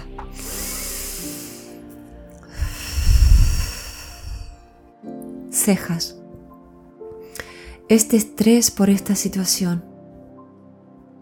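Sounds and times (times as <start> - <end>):
breathy exhale through the mouth: 0.3 - 1.8, 2.5 - 4.7
slow hissing inhale through the nose: 0.3 - 1.8, 2.4 - 4.7
speech: 5.6 - 6.2, 7.9 - 9.9.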